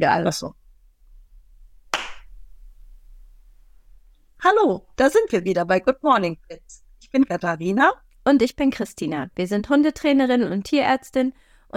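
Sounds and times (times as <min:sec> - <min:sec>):
speech: 0:00.0 - 0:00.6, 0:04.4 - 0:11.7
hand clapping: 0:01.9 - 0:02.3.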